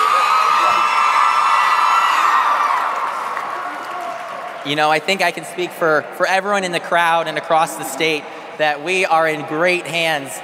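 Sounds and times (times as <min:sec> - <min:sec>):
large crowd cheering and whooping: 0:00.0 - 0:04.7
speech: 0:04.7 - 0:10.4.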